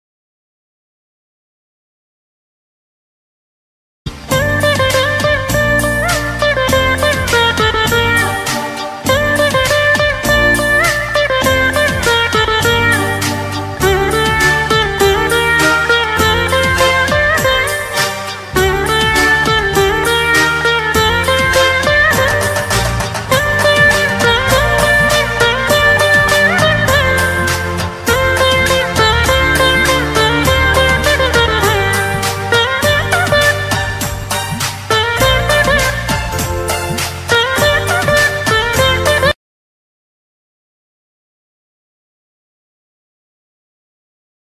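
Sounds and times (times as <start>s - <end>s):
veena instrumental background music ringtone: 4.1s - 39.4s.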